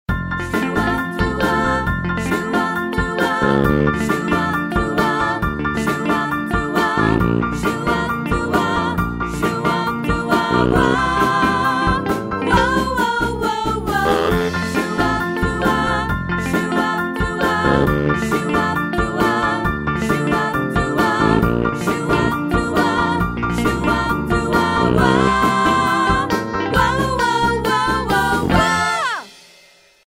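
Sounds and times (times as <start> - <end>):
1950s doo-wop music: 0.1 - 29.5.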